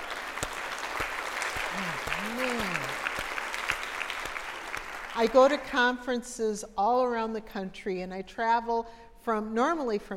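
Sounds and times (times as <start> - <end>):
audience applause: 0.0 - 5.4
speech: 5.2 - 10.1.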